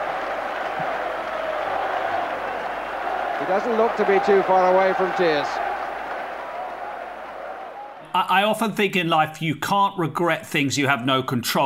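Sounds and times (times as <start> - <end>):
packed stadium crowd applauding and cheering at City Ground: 0.0 - 8.4
speech: 3.4 - 5.6, 8.2 - 11.6.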